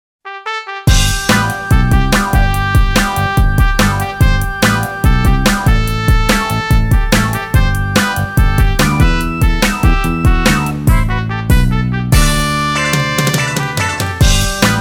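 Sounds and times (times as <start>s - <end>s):
cheesy 1970s game show music: 0.4s - 14.7s.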